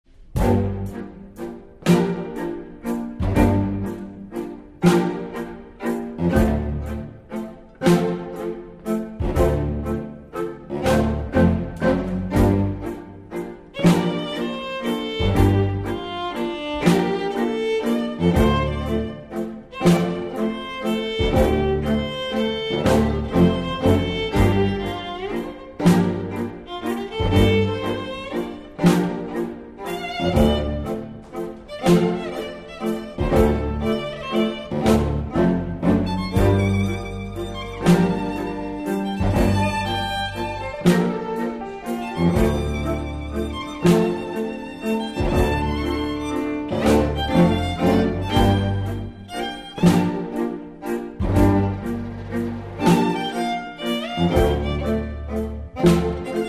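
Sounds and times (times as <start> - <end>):
strings: 0.0 - 56.4.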